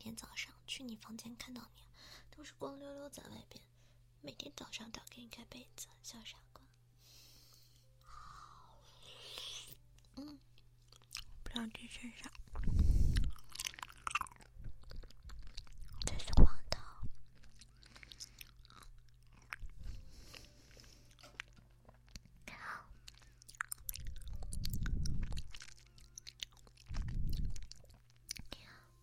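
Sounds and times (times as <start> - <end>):
speech: 0.2 - 6.4, 11.6 - 12.7
soft wet chewing of jelly while being fed: 10.0 - 28.6.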